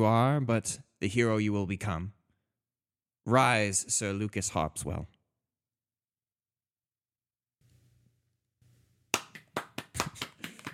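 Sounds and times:
speech: 0.0s - 2.2s, 3.2s - 5.2s
applause: 9.1s - 10.7s.

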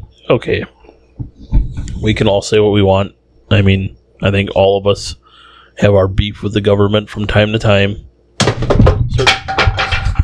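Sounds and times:
speech: 0.2s - 1.3s, 2.0s - 5.2s, 5.8s - 9.4s
chair breaking under someone: 8.4s - 10.2s.

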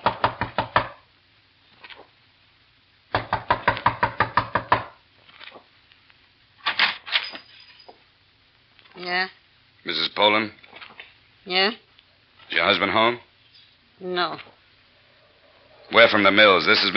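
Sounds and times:
rapid loud knocking on a door: 0.0s - 1.0s, 3.1s - 5.0s
speech: 9.0s - 10.6s, 11.4s - 11.8s, 12.5s - 13.3s, 14.0s - 14.5s, 15.9s - 16.9s.

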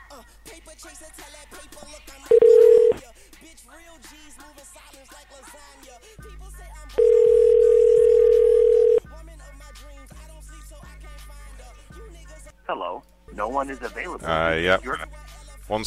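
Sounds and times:
speech: 0.2s - 7.3s, 12.7s - 15.8s
telephone line tones while placing a prank call: 2.3s - 3.0s, 7.0s - 9.0s.

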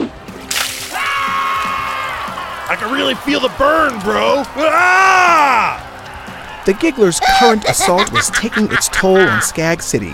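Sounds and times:
boiling hot baby oil pouring and splashing onto crowd: 0.5s - 1.8s
speech: 2.7s - 5.8s, 6.6s - 10.1s
laughter: 4.6s - 10.1s.

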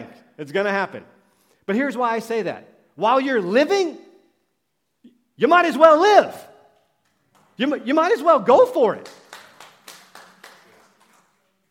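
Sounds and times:
speech: 0.4s - 4.1s, 5.4s - 6.5s, 7.6s - 9.2s
audience hand clap: 8.9s - 11.7s.

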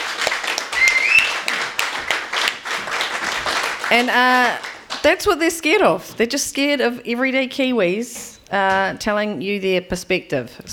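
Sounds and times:
crowd applauding: 0.0s - 5.0s
high whistles: 0.7s - 1.5s
speech: 3.9s - 10.7s.

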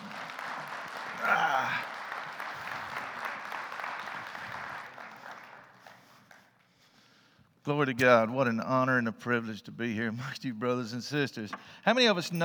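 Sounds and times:
round of applause: 0.0s - 7.1s
speech: 7.6s - 12.4s.

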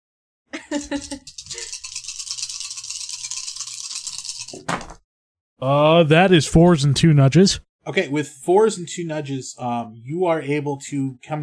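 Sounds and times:
speech: 0.8s - 1.7s, 5.6s - 11.4s
dice rattling and clattering: 0.8s - 4.9s.

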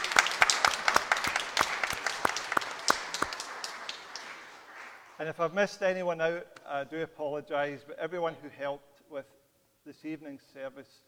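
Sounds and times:
group clapping: 0.0s - 5.3s
speech: 5.2s - 11.0s.

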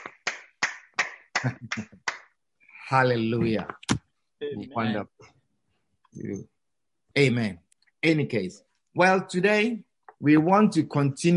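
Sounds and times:
audience clapping hands: 0.0s - 2.3s
speech: 1.4s - 2.2s, 2.9s - 5.4s, 6.1s - 6.5s, 7.2s - 11.3s.

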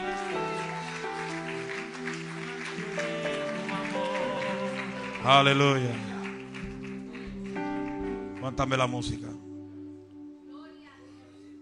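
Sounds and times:
audience applause: 0.0s - 9.0s
speech: 5.2s - 6.1s, 8.5s - 9.3s.

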